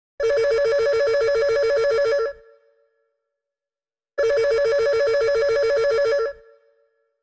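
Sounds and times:
80s phone ringtone: 0.2s - 2.5s, 4.2s - 6.8s.

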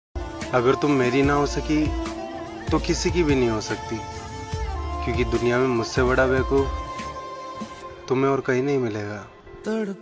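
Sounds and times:
sad Hindi breakup song: 0.2s - 8.5s, 9.3s - 10.0s.

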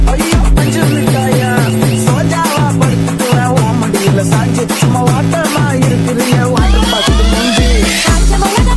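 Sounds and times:
remix ringtone: 0.2s - 8.6s.

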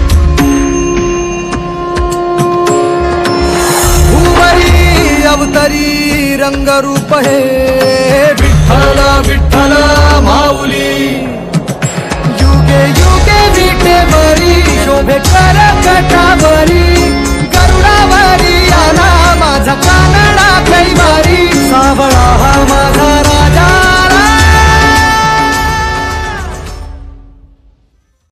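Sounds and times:
Marathi bhajan ringtone: 0.2s - 27.2s.

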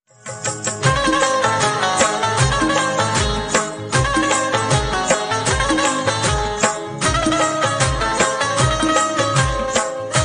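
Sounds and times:
music ringtone: 0.8s - 10.2s.

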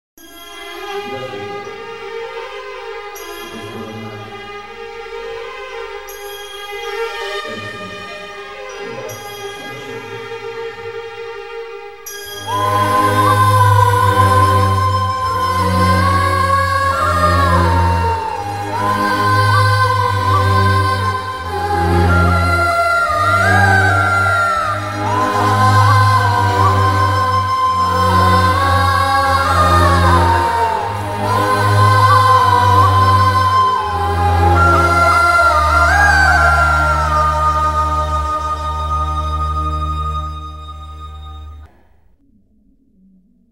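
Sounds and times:
sad love background score: 0.3s - 41.7s.

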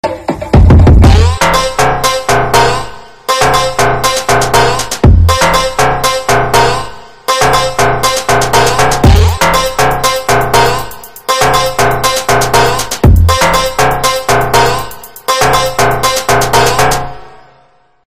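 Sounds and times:
background theme music: 0.0s - 17.7s.

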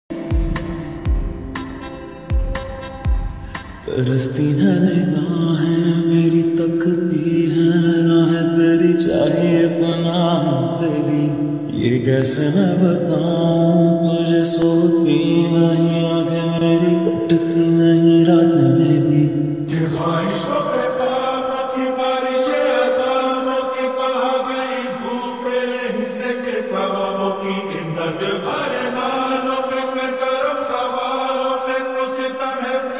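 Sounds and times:
slowed reverb music: 0.1s - 32.9s.

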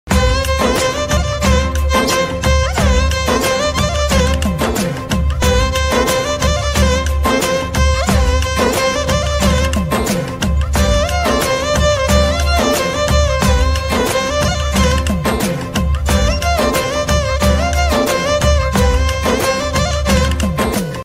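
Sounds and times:
violin ringtone background music: 0.1s - 21.0s.

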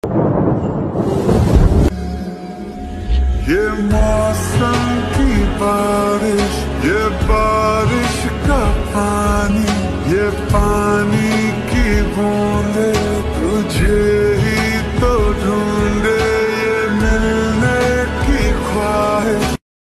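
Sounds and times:
slowed song with reverb: 0.0s - 19.6s.

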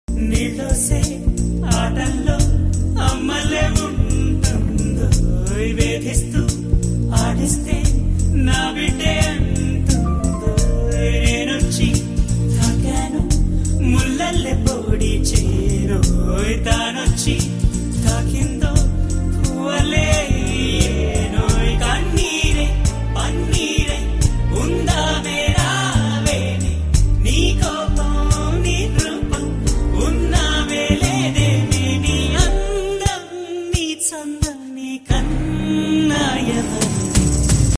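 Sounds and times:
Telugu love songs: 0.1s - 37.7s.

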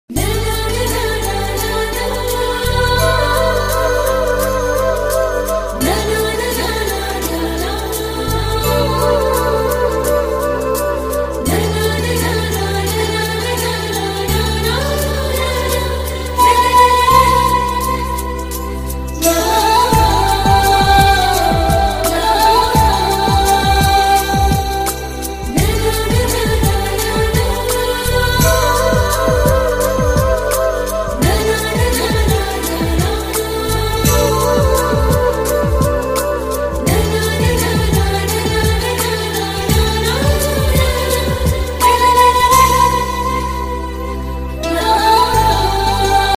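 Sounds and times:
romantic Odia ringtone music: 0.3s - 46.3s.

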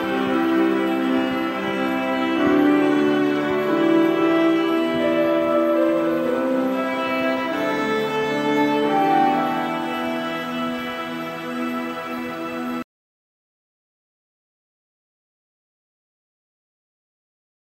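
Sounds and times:
violin cover: 0.0s - 12.8s.

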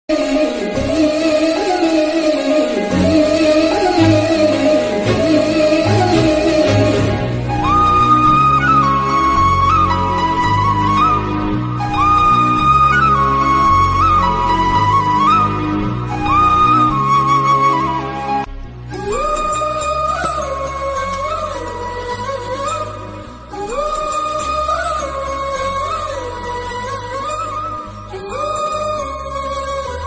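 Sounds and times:
Telugu film background music: 0.1s - 30.0s.

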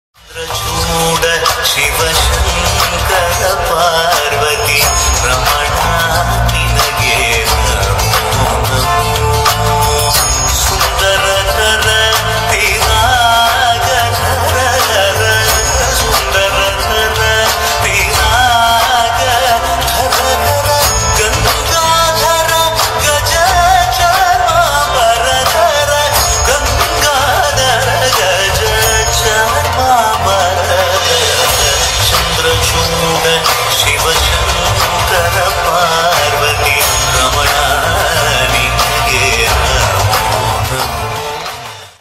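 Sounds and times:
Malayalam devotional ringtone for God Shiva: 0.3s - 41.9s.

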